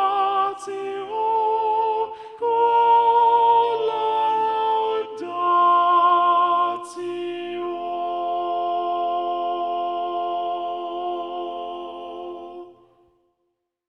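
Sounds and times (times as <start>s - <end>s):
SATB choir singing with predominant soprano: 0.0s - 13.1s.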